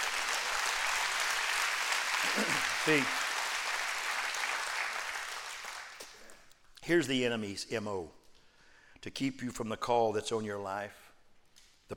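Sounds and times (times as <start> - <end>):
audience clapping: 0.0 - 6.5
speech: 2.2 - 3.2, 6.9 - 8.2, 9.0 - 11.0.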